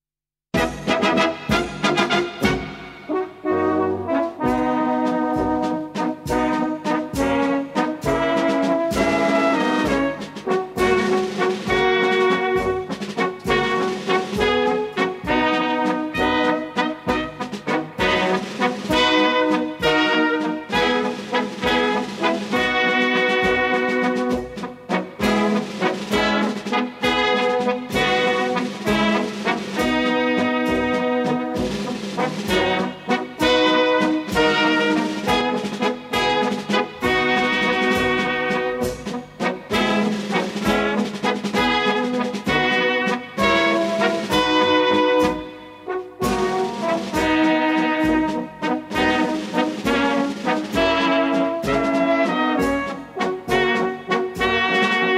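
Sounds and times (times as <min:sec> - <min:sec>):
military marches: 0:00.5 - 0:55.1.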